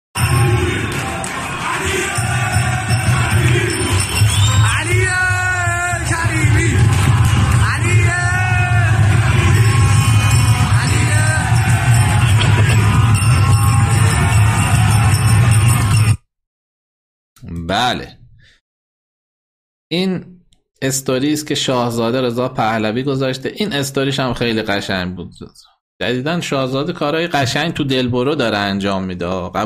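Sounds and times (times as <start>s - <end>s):
football stadium crowd cheering and chanting: 0.2s - 16.2s
shouted calls and yells: 0.2s - 16.2s
speech: 17.7s - 18.2s, 19.9s - 29.6s.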